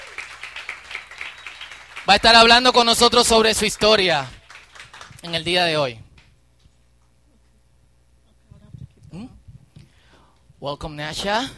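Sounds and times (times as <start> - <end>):
small crowd clapping: 0.0 - 6.3
speech: 2.1 - 4.4, 5.2 - 6.0, 10.6 - 11.5.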